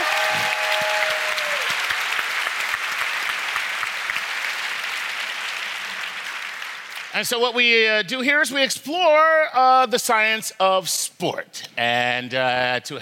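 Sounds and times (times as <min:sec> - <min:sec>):
audience applause: 0:00.0 - 0:07.2
speech: 0:07.2 - 0:13.0.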